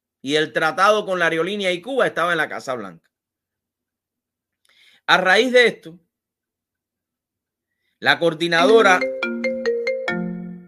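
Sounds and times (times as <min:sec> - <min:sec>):
speech: 0:00.2 - 0:03.1, 0:05.1 - 0:06.0, 0:08.0 - 0:09.1
phone ringtone for an incoming call: 0:08.6 - 0:10.6.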